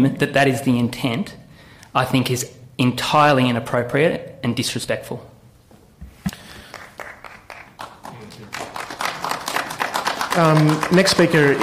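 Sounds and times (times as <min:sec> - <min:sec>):
speech: 0:00.0 - 0:01.4, 0:02.0 - 0:05.3, 0:10.4 - 0:11.6
audience applause in council chamber: 0:06.6 - 0:11.6.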